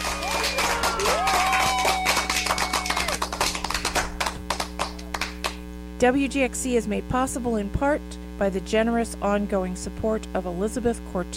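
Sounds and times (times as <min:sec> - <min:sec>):
hand clapping: 0:00.0 - 0:05.7
speech: 0:06.0 - 0:11.3.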